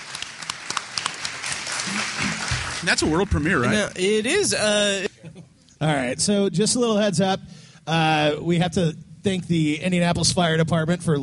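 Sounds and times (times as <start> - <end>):
audience applause: 0.0 - 4.3
speech: 2.0 - 5.2, 5.8 - 11.2.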